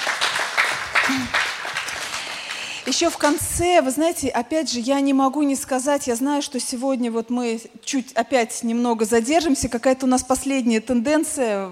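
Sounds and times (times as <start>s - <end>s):
church congregation applause: 0.0s - 2.8s
speech: 1.1s - 1.4s, 2.8s - 11.6s.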